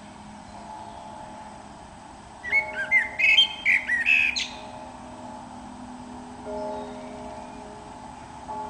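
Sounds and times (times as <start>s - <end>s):
Eurasian blackbird song: 0.0s - 1.6s, 2.4s - 5.0s, 6.4s - 8.6s.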